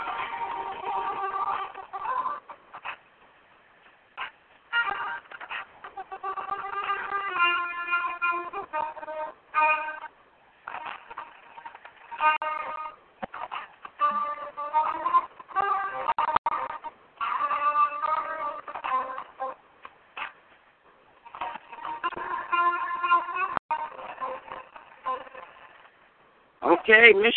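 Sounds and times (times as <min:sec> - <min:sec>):
jazz music: 0:00.0 - 0:03.0, 0:04.2 - 0:19.6, 0:21.2 - 0:25.6
speech: 0:26.9 - 0:27.3.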